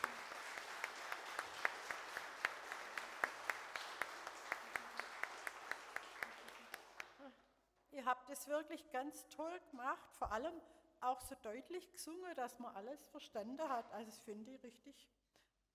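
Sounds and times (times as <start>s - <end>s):
audience applause for children's choir: 0.0s - 7.2s
speech: 8.1s - 15.2s.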